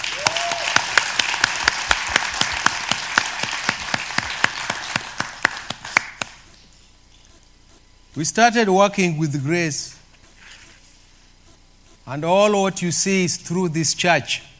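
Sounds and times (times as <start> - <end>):
audience applause: 0.0 - 6.4
speech: 8.2 - 10.0, 12.1 - 14.5.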